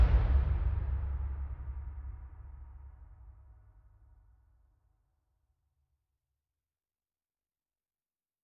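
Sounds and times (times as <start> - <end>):
percussion: 0.0 - 4.2.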